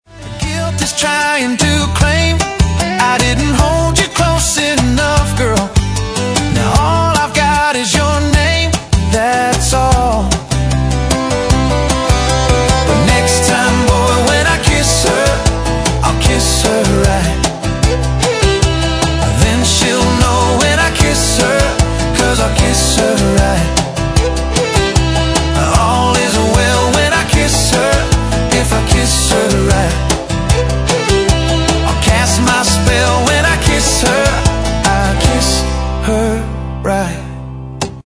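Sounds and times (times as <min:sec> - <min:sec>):
bluegrass band: 0:00.1 - 0:36.3.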